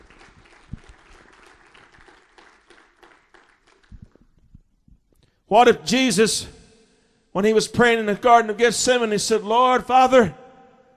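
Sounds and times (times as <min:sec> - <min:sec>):
audience clapping in praise: 0:00.0 - 0:04.7
speech: 0:05.5 - 0:06.6, 0:07.4 - 0:10.4.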